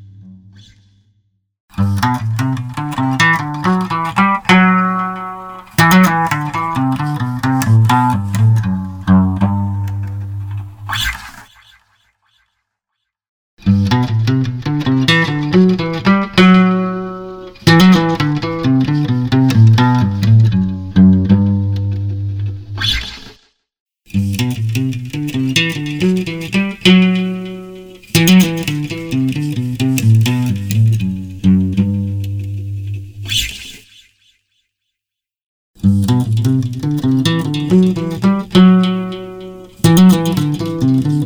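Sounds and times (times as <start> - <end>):
acoustic guitar: 1.8 - 11.1, 13.7 - 22.7, 24.2 - 33.3, 35.8 - 41.2.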